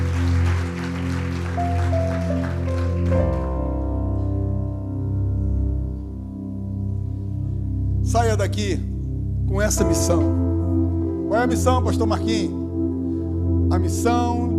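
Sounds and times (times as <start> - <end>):
audience clapping: 0.0 - 3.9
sustained keyboard chords: 0.0 - 14.5
speech: 8.1 - 8.9, 9.5 - 10.5, 11.4 - 12.6, 13.8 - 14.5.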